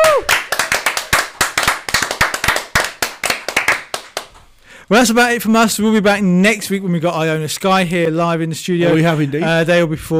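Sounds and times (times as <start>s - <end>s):
applause and cheering: 0.0s - 4.4s
speech: 4.9s - 10.1s.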